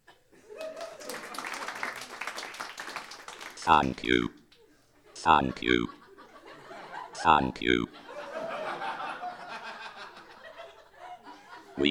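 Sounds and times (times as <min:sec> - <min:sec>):
laughter: 0:00.3 - 0:02.4, 0:03.5 - 0:11.8
audience applause: 0:00.5 - 0:04.1
speech: 0:03.7 - 0:04.4, 0:05.2 - 0:06.0, 0:07.2 - 0:08.0.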